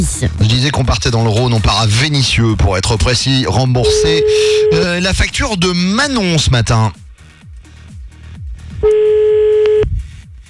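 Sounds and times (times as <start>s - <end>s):
speech: 0.0s - 7.0s
telephone ringback tone on the line: 3.9s - 4.9s, 8.8s - 9.8s.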